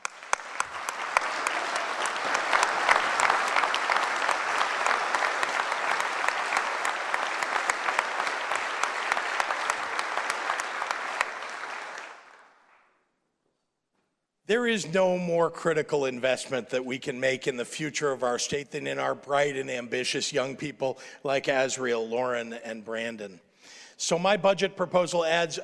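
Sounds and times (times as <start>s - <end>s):
audience applause: 0.0s - 12.8s
speech: 14.5s - 25.6s.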